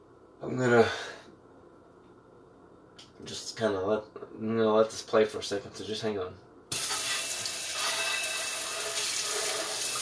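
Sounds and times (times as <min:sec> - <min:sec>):
speech: 0:00.4 - 0:01.2, 0:03.2 - 0:06.5
tap water running into a sink while glasses are washed: 0:06.7 - 0:10.0.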